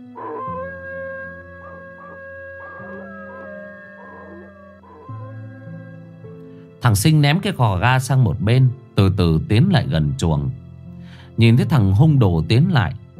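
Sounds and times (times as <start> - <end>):
dogs howling mournfully: 0.1 - 6.1
speech: 6.8 - 10.6, 11.4 - 13.1.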